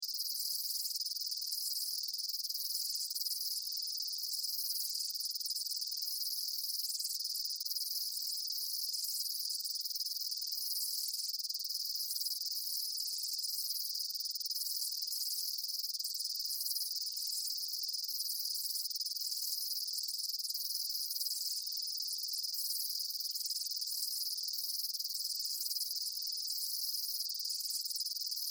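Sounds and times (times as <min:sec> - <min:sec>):
daytime insect chorus chirping outdoors: 0:00.0 - 0:28.4.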